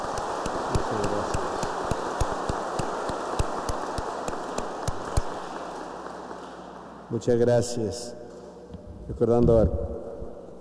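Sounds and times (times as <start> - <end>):
applause: 0.0 - 7.4
speech: 7.1 - 8.2, 9.1 - 9.8.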